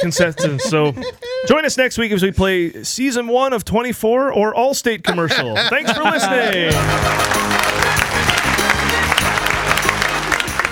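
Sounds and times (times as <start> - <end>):
laughter: 0.0 - 1.6, 5.1 - 10.1
speech: 0.0 - 7.8
crowd applause: 5.1 - 10.7.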